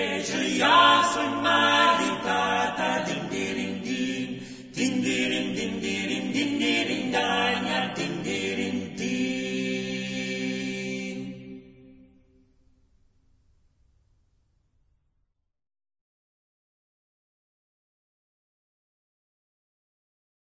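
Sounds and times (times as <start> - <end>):
medieval chant: 0.0 - 12.2.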